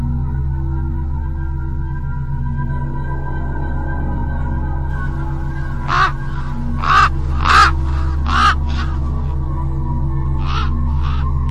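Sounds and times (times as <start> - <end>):
steady low hum: 0.0 - 11.5
crows cawing with harsh rasping calls: 5.0 - 9.7, 10.4 - 11.5.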